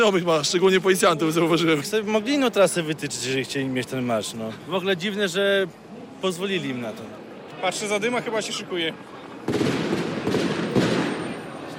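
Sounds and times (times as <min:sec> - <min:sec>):
speech: 0:00.0 - 0:09.6
blank gunshots fired to disperse crowd: 0:09.4 - 0:11.7.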